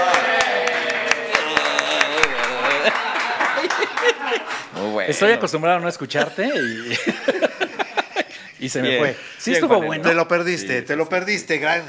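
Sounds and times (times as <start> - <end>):
applause: 0.0 - 4.7
laughter: 1.0 - 4.9, 6.1 - 9.4
speech: 4.9 - 7.4, 8.6 - 11.8.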